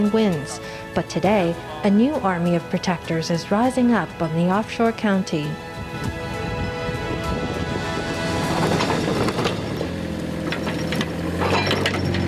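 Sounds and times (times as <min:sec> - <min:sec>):
speech: 0:00.0 - 0:06.2
excavator clearing sand from road: 0:07.3 - 0:12.2.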